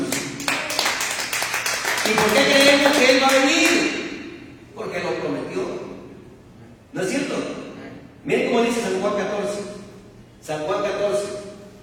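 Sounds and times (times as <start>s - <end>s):
audience applause: 0.4s - 3.3s
speech: 2.1s - 4.0s, 7.0s - 7.6s, 8.2s - 9.7s, 10.4s - 11.4s.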